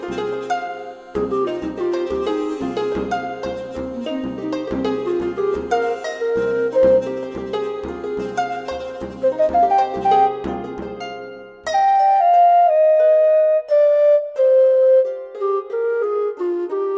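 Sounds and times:
harp: 0.0s - 16.9s
hurdy-gurdy: 0.0s - 16.9s
drum: 1.2s - 11.2s.

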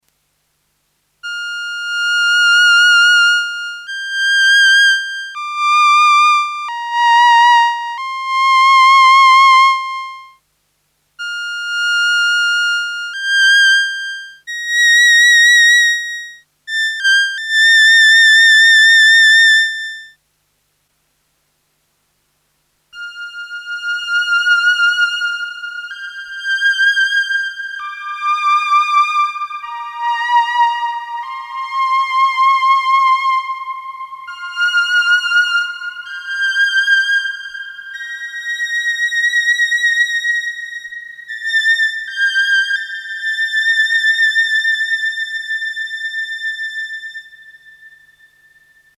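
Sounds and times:
SY 1 violin with aftertouch dry and wet: 1.2s - 10.4s, 11.2s - 20.1s, 23.0s - 48.9s.

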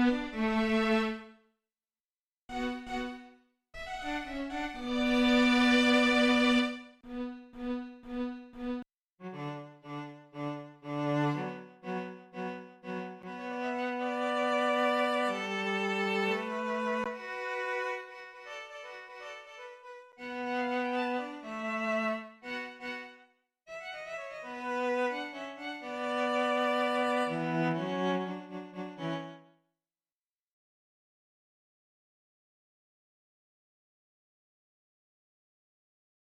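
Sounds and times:
strings: 0.0s - 1.3s, 2.5s - 29.4s.

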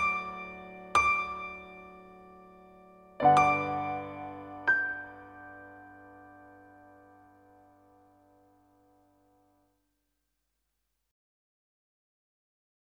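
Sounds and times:
Roland EA7 stage grand piano: 0.0s - 9.1s.

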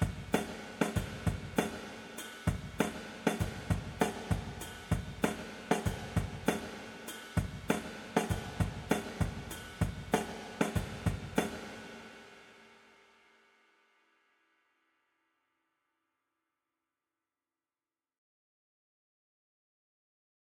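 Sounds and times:
drum kit through Eventide SP2016 room reverb: 0.0s - 14.3s.

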